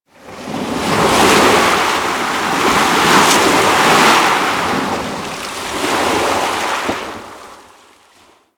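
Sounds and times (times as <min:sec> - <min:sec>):
ocean wave crashing: 0:00.8 - 0:07.5.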